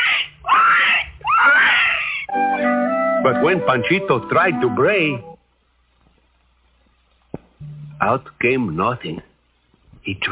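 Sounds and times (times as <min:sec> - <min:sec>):
pig squealing: 0:00.0 - 0:02.3
speech: 0:03.2 - 0:05.3, 0:08.0 - 0:09.3, 0:10.1 - 0:10.2.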